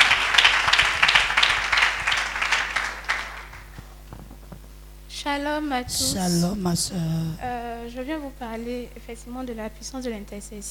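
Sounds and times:
church audience applause: 0.0 - 4.0
speech: 5.3 - 10.6.

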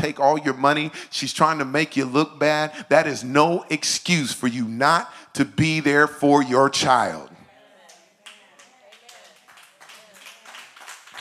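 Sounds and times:
speech: 0.0 - 7.3
women clapping: 8.2 - 11.2.

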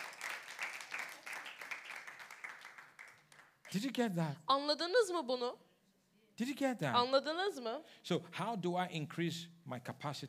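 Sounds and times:
faint church congregation applause during a sermon: 0.0 - 3.5
speech: 3.7 - 5.7, 6.4 - 10.2.

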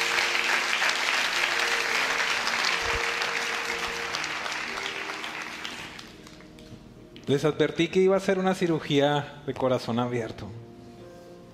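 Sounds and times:
audience applause: 0.0 - 6.4
speech: 7.3 - 10.6.

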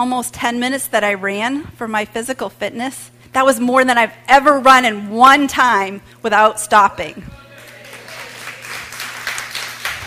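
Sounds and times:
speech: 0.0 - 7.4
faint hum: 0.0 - 10.0
small group clapping: 7.5 - 10.0.

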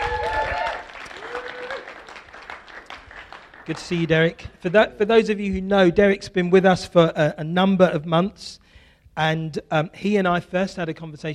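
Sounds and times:
round of applause: 0.0 - 4.5
speech: 3.7 - 8.6, 9.2 - 11.3.

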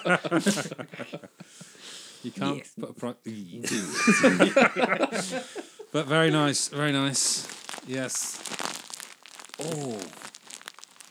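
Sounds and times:
laughter: 0.0 - 1.8, 3.6 - 6.7
speech: 0.0 - 8.7, 9.6 - 10.3
bag of rice being shaken: 7.2 - 11.0.

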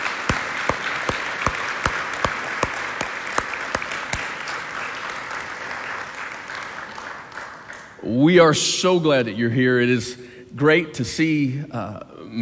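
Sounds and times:
church congregation clapping to welcome friends from Taiwan: 0.0 - 8.2
speech: 8.1 - 12.4.

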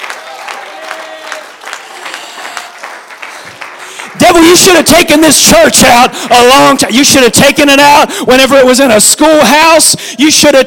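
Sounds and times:
audience clapping: 0.0 - 5.2
speech: 4.4 - 10.6.

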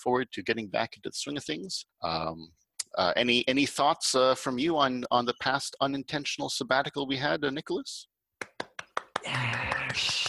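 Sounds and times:
speech: 0.0 - 8.1, 9.2 - 10.2
sharp claps or knocks: 8.4 - 10.2.

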